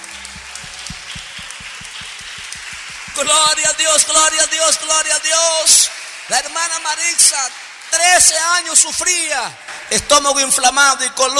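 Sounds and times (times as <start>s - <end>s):
audience applauding: 0.0s - 9.1s
speech: 3.2s - 11.3s.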